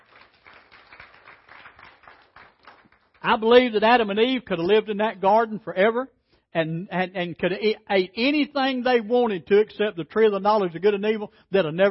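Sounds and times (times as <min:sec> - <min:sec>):
audience hand clapping: 0:00.0 - 0:03.6
speech: 0:03.2 - 0:11.8.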